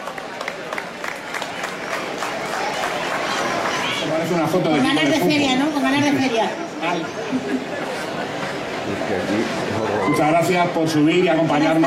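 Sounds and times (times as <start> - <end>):
audience applause: 0.0 - 4.4
speech: 4.2 - 11.8.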